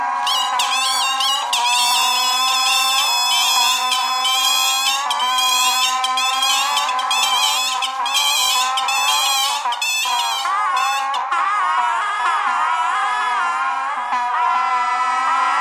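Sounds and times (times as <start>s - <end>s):
geese: 0.2s - 11.3s
bagpipe: 0.2s - 15.5s.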